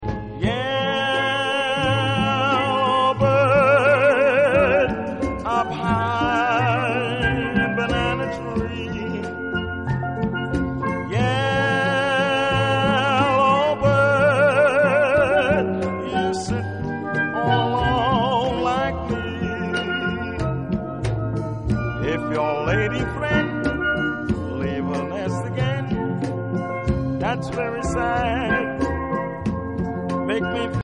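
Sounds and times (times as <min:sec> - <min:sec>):
steelband playing: 0:00.1 - 0:30.8.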